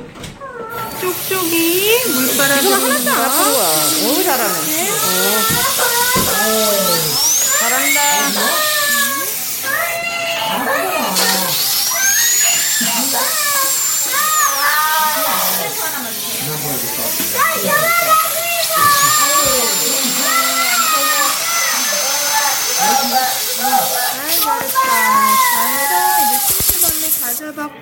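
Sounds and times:
dentist's drill during dental treatment: 0.7 - 27.7.

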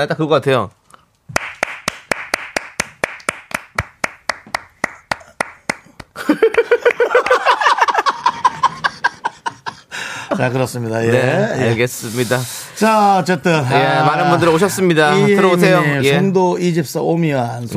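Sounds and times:
speech: 0.0 - 0.8, 10.4 - 17.7
clapping: 1.4 - 7.5
voices laughing and whooping: 6.2 - 9.8.

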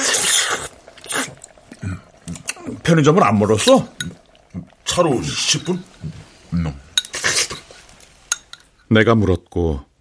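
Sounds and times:
eating ramen noisily: 0.0 - 6.2
speech: 2.9 - 4.0, 5.0 - 5.9, 8.9 - 9.9
dishes and utensils clinking: 7.0 - 7.7.

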